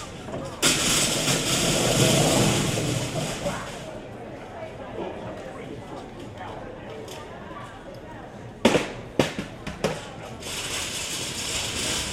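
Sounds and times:
Tesco store noise: 0.0 - 4.7, 8.4 - 12.1.

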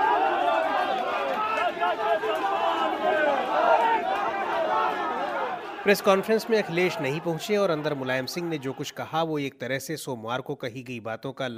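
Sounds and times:
Akhilesh Yadav's supporters chanting slogans outside the Samajwadi Party office: 0.0 - 8.9
speech: 5.8 - 11.5.

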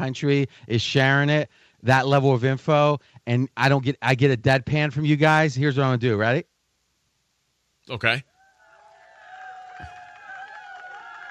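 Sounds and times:
speech: 0.0 - 6.5, 7.9 - 8.3
fake applause from a soundboard: 8.6 - 11.2.

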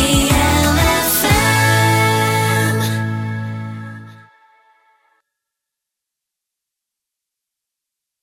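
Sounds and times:
jingle: 0.0 - 4.3.

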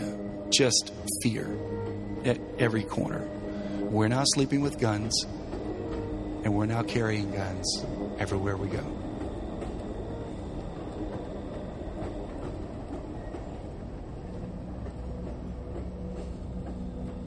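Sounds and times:
freight train rumbling along the rails: 0.0 - 17.2
speech: 0.5 - 5.4, 6.4 - 9.0.

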